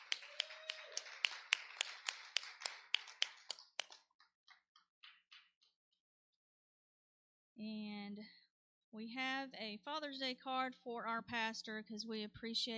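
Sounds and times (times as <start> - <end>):
audience hand clapping for dads: 0.0 - 5.8
speech: 7.6 - 12.7.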